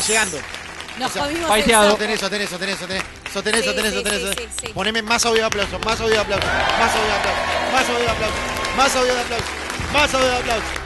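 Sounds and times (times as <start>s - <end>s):
crowd clapping as an applause sound effect: 0.0s - 10.8s
speech: 0.1s - 10.8s
shouting voices and whoops: 6.3s - 9.3s.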